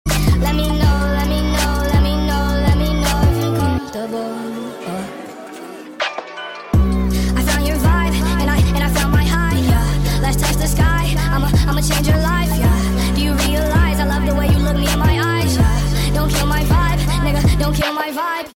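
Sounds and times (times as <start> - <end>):
sped up songs: 0.1 - 18.2.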